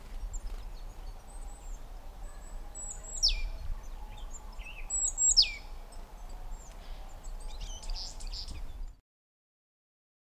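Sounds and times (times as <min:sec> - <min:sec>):
Great tit giving high descending calls: 0:00.0 - 0:08.9.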